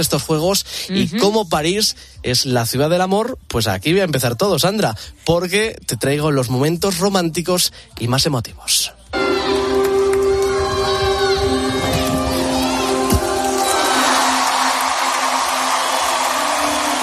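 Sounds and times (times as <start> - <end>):
speech: 0.0 - 9.6
crowd ovation for Simone Biles: 9.2 - 17.0.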